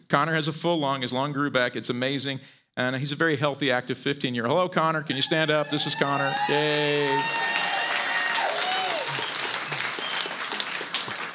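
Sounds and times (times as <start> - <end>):
speech: 0.1 - 7.6
crowd applause: 5.2 - 11.3.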